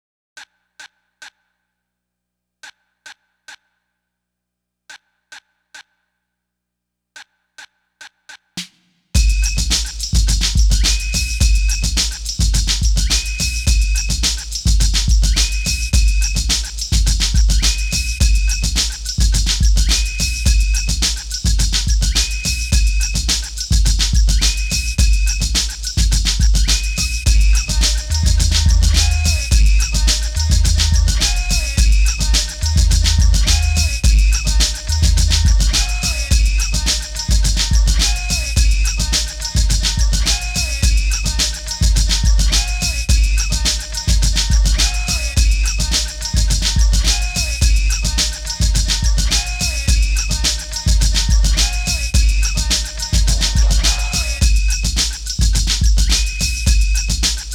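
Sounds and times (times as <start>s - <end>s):
bonus beats: 8.6s - 57.5s.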